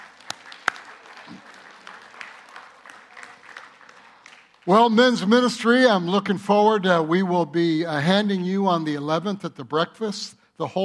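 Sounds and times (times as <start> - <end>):
audience applause: 0.0 - 5.0
speech: 4.7 - 10.8.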